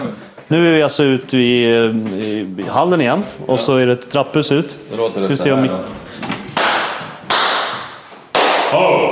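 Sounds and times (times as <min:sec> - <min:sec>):
speech: 0:00.5 - 0:06.4, 0:08.7 - 0:09.1
hand claps echoing in a stairwell: 0:06.4 - 0:09.1.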